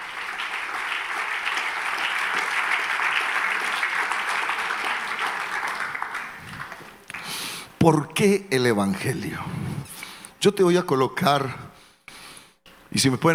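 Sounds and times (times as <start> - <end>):
audience applause: 0.0 - 7.7
speech: 7.8 - 9.7, 10.4 - 11.6, 12.9 - 13.3.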